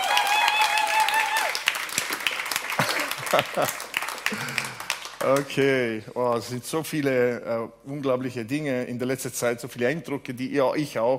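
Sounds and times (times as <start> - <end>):
audience applause: 0.0 - 5.4
laughter: 2.7 - 4.8
speech: 3.3 - 11.1.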